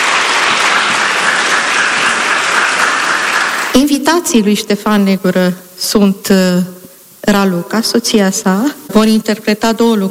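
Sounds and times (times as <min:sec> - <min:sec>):
audience applause for orchestra: 0:00.0 - 0:03.8
speech: 0:03.8 - 0:10.0.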